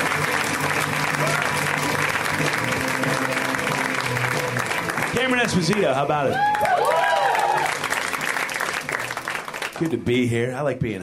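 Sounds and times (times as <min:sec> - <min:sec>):
room full of people clapping: 0:00.0 - 0:10.2
speech: 0:05.4 - 0:06.7, 0:09.8 - 0:11.0.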